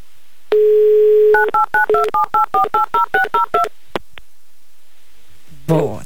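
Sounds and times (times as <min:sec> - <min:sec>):
telephone dial tone: 0:00.5 - 0:03.7.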